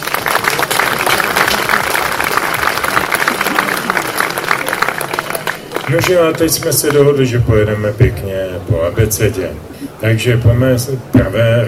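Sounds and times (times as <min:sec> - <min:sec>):
crowd applauding: 0:00.0 - 0:07.4
speech: 0:05.9 - 0:11.6.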